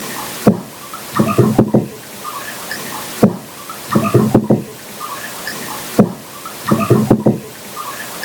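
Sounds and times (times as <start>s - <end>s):
sequential knocking: 0.4s - 2.0s, 3.2s - 4.8s, 6.0s - 7.5s.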